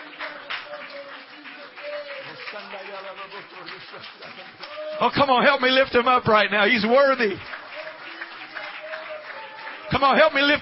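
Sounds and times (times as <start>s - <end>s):
audience clapping: 0.0s - 10.6s
speech: 2.6s - 7.6s, 10.0s - 10.6s.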